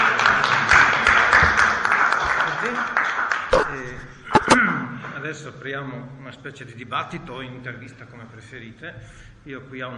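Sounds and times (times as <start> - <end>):
audience applause: 0.0 - 4.5
speech: 5.3 - 9.9.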